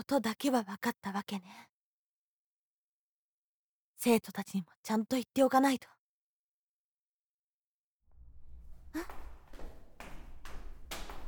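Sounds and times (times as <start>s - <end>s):
speech: 0.0s - 1.7s, 4.0s - 6.0s, 8.9s - 9.2s
footsteps: 8.4s - 11.2s.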